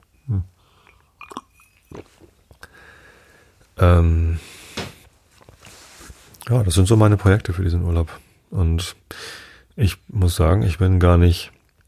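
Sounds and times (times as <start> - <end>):
speech: 0.3 - 0.6, 3.8 - 4.5, 6.5 - 11.6
someone drinking coffee with mouth sounds: 0.7 - 2.8.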